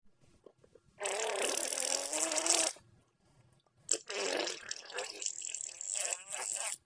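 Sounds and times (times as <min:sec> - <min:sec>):
fart: 0:01.0 - 0:02.8, 0:03.9 - 0:06.9.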